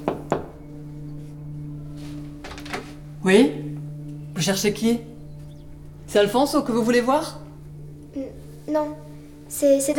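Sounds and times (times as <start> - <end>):
knocking on a door: 0.0 - 0.6
low steady hum: 0.0 - 9.9
speech: 3.2 - 3.6, 4.4 - 5.1, 6.1 - 7.4, 8.7 - 9.9.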